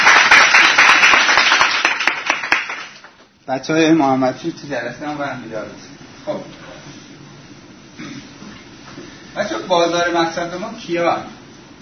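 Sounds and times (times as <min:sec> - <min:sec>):
group clapping: 0:00.0 - 0:03.3
speech: 0:03.5 - 0:06.6, 0:09.4 - 0:11.4.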